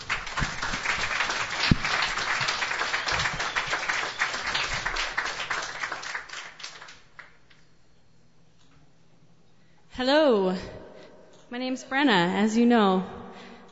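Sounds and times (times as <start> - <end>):
audience applause welcoming performer: 0.0 - 7.2
speech: 10.0 - 10.7, 11.5 - 13.2.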